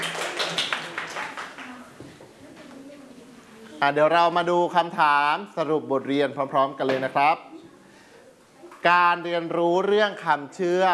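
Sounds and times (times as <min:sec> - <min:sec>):
students clapping hands: 0:00.0 - 0:01.8
speech: 0:03.8 - 0:07.5, 0:08.8 - 0:10.9.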